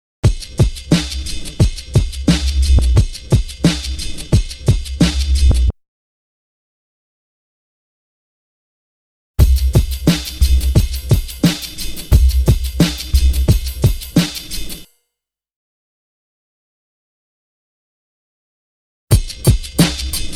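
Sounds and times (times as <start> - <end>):
drum loop: 0.2 - 5.6, 9.4 - 14.9, 19.1 - 20.3.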